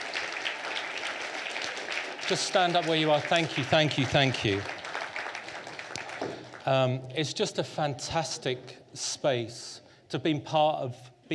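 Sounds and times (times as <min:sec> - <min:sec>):
round of applause: 0:00.0 - 0:07.0
speech: 0:02.3 - 0:04.8, 0:06.6 - 0:11.3.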